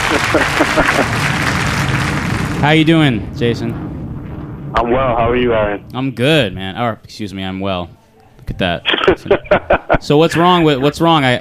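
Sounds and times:
laughter: 0.0 - 1.4, 8.8 - 10.8
canned applause sound effect set off from a button: 0.0 - 2.9
speech: 0.4 - 1.5, 2.6 - 3.9, 4.7 - 11.3.

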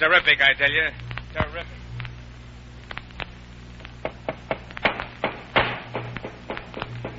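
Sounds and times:
speech: 0.0 - 1.8
steady low hum: 0.0 - 7.1
hammering on a wooden crate: 4.0 - 7.1.

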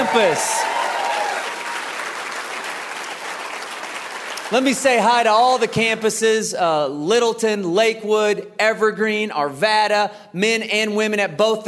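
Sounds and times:
person whooping: 0.0 - 1.5
church congregation applause: 0.0 - 6.1
speech: 0.2 - 0.8, 4.5 - 11.6.

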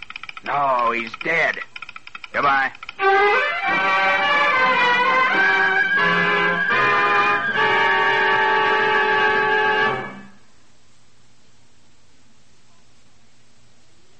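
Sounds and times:
speech: 0.4 - 1.7, 2.3 - 4.1
train horn blast: 3.7 - 10.4.

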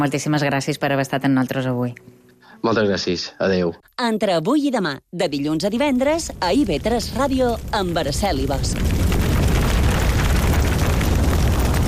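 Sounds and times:
speech: 0.0 - 9.0
crackles and pops of forest fire: 5.6 - 11.8
forest fire roaring: 5.8 - 11.8.

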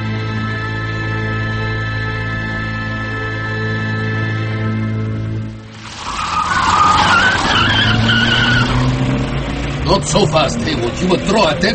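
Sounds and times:
car engine roaring as it speeds off: 0.0 - 11.7
skidding car tyres screeching: 5.7 - 11.7
speech: 10.1 - 11.7.

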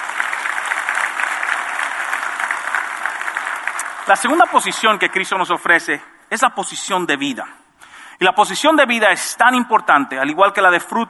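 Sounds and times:
audience applause: 0.0 - 6.2
speech: 4.1 - 7.6, 8.2 - 11.0.

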